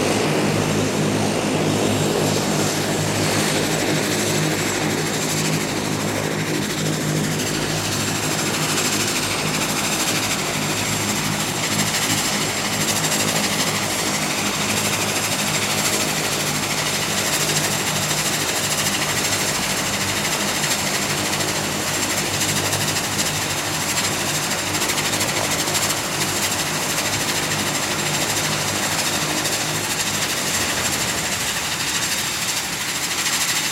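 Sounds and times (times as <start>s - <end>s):
Dash 8 airplane landing: 0.0s - 33.7s.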